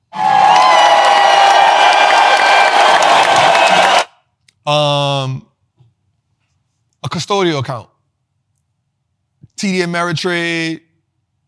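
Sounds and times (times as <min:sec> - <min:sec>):
crowd clapping and cheering: 0:00.0 - 0:04.1
speech: 0:04.7 - 0:05.5, 0:07.1 - 0:07.9, 0:09.6 - 0:10.8.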